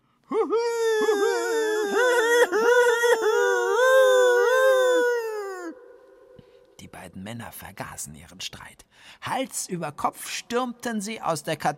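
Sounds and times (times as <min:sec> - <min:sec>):
eerie owl call echoing through cathedral: 0:00.3 - 0:06.8
speech: 0:07.2 - 0:11.7.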